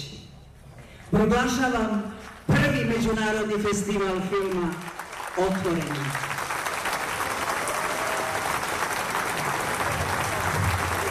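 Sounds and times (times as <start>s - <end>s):
speech: 1.1s - 6.4s
thunderous applause from a packed open-air summer stage audience at a film festival in Niš: 5.0s - 11.0s.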